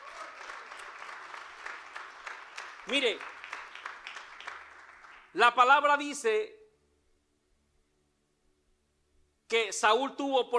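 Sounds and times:
church congregation applauding in praise of Jesus during a service: 0.0s - 5.7s
speech: 2.9s - 3.4s, 5.3s - 6.6s, 9.5s - 10.5s.

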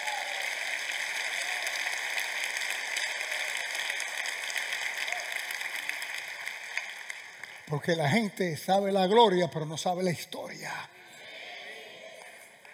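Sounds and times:
crowd applause: 0.0s - 9.2s
speech: 7.7s - 11.0s.

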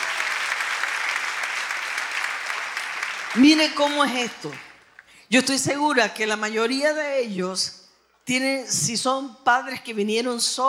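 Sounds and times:
audience applause: 0.0s - 4.9s
speech: 3.3s - 4.7s, 5.3s - 10.6s.

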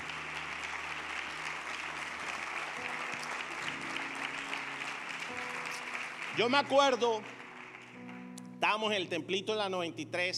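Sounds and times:
audience applause: 0.0s - 8.2s
speech: 6.4s - 7.4s, 8.7s - 10.3s.

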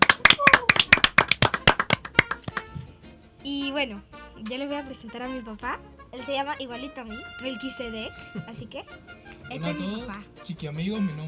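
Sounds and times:
audience applause: 0.0s - 2.6s
speech: 3.8s - 11.2s.

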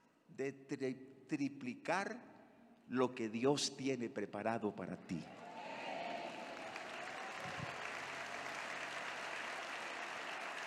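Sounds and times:
speech: 0.3s - 2.3s, 2.9s - 5.8s
audience applauding: 5.8s - 10.6s.

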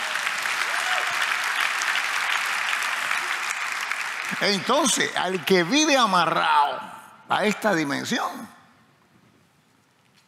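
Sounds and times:
audience applauding: 0.0s - 6.5s
speech: 4.4s - 8.6s.

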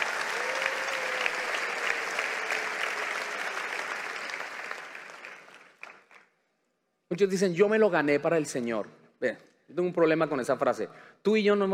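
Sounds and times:
audience applause: 0.0s - 6.2s
speech: 7.1s - 11.7s.

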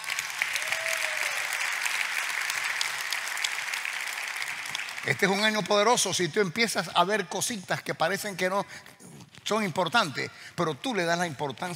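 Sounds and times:
audience applause: 0.0s - 5.9s
speech: 5.0s - 8.9s, 9.5s - 11.7s.

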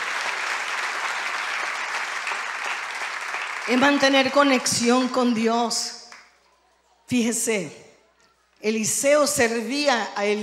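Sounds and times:
applause: 0.0s - 5.2s, 6.0s - 6.4s
speech: 3.7s - 6.0s, 7.1s - 7.8s, 8.6s - 10.4s.

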